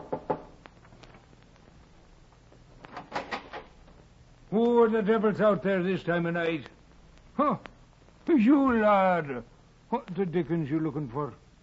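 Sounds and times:
knocking on a wooden cabin door: 0.0 - 0.5
speech: 4.5 - 6.8, 7.4 - 7.7, 8.3 - 11.4.

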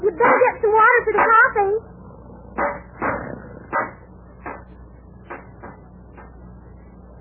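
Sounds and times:
rock banging on a bent metal grate to straighten it: 0.2 - 1.6, 2.6 - 6.4.

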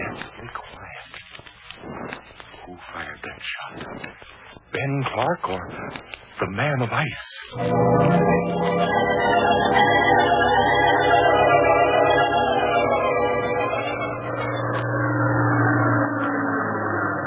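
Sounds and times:
speech: 4.8 - 9.3
airplane engine droning overhead: 7.6 - 17.2.

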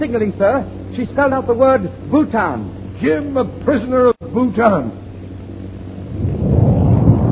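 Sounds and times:
speech: 0.0 - 5.0
bomb explosion: 6.1 - 7.2.

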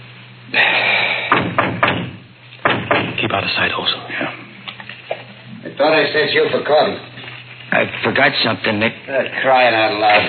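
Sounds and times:
knock on a door: 1.3 - 3.2
speech: 3.4 - 4.4, 5.8 - 7.1, 7.7 - 10.2.

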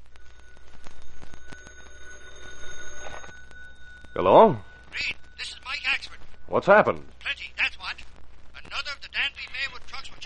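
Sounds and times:
telephone bell ringing: 0.0 - 6.5
speech: 4.2 - 5.1, 6.5 - 7.1.

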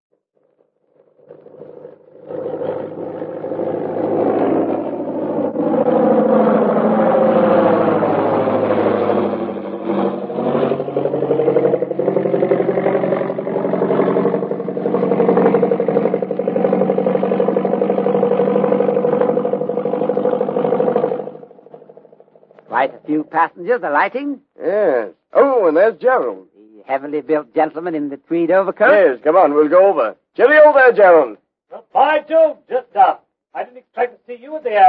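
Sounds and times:
arriving airplane engine: 0.9 - 22.8
speech: 23.3 - 25.1, 25.7 - 34.8.

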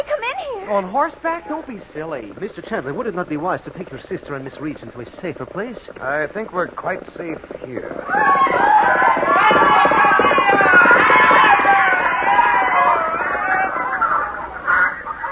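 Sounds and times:
speech: 0.7 - 10.8
rowdy crowd uproar of shouting voices: 8.0 - 15.3
chickens clucking and squawking: 12.5 - 15.3.

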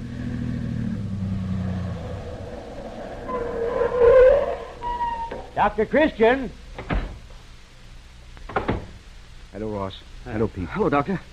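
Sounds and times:
car driving up: 0.0 - 5.6
speech: 5.6 - 7.0, 9.6 - 11.3.

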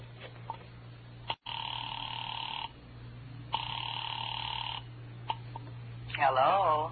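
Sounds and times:
telephone ringback tones through a phone line: 1.4 - 2.8, 3.5 - 4.9.

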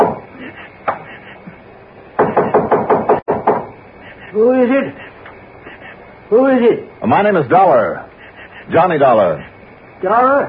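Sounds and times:
knocking on a wooden door: 0.0 - 0.2, 2.2 - 3.7
speech: 4.3 - 5.0, 6.3 - 8.1, 8.7 - 10.4.

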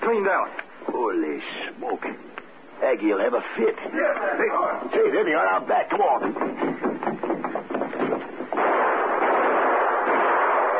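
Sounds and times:
speech: 0.1 - 7.6
gunshots: 8.0 - 10.7.

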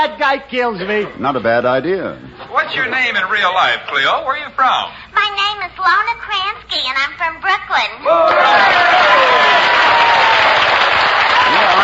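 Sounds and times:
speech: 0.0 - 10.7
crowd audience applause: 8.2 - 11.8.

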